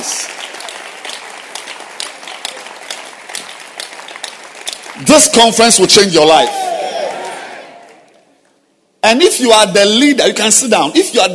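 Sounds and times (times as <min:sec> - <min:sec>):
audience clapping hands: 0:00.0 - 0:08.2
speech: 0:05.0 - 0:06.7, 0:09.1 - 0:11.3.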